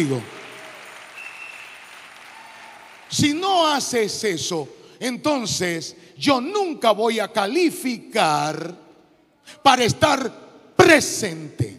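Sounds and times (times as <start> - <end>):
speech: 0.0 - 0.4, 3.1 - 8.8, 9.5 - 11.7
audience applause: 0.0 - 3.4.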